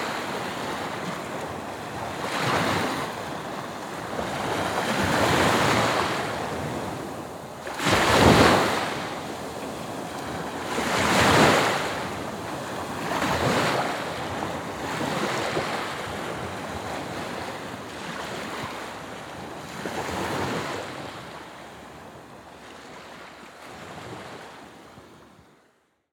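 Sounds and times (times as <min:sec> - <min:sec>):
waves on a beach: 0:00.0 - 0:25.8.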